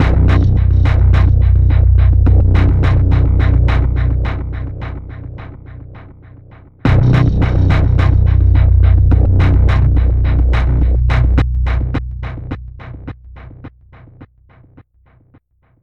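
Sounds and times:
intro music stinger: 0:00.0 - 0:05.8, 0:06.9 - 0:13.6.

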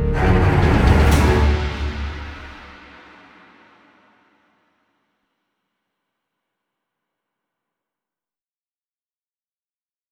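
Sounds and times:
ship crash: 0:00.2 - 0:04.4.

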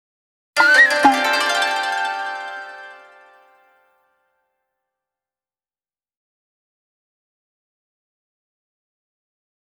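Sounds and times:
jingle: 0:00.6 - 0:03.6.

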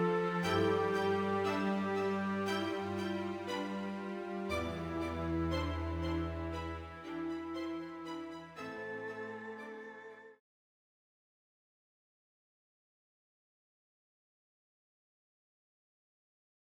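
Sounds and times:
scene music: 0:00.0 - 0:10.4.

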